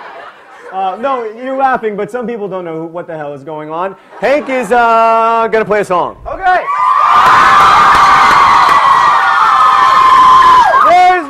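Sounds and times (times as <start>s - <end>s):
laughter: 0.0s - 1.6s, 3.9s - 5.4s
speech: 0.7s - 6.8s
audience cheering: 6.3s - 11.2s.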